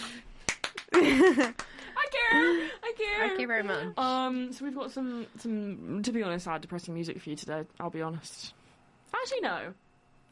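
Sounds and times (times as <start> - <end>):
hands clapping: 0.0 - 2.0
laughter: 0.8 - 2.8
speech: 1.0 - 10.2.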